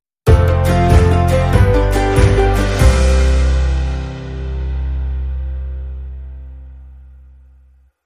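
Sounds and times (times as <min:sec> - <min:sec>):
rustic countryside music sting: 0:00.3 - 0:06.9.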